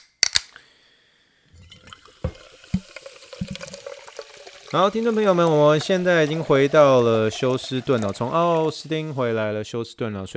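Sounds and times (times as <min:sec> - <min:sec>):
fizzing sparkling water: 0:01.6 - 0:09.4
speech: 0:04.7 - 0:10.3.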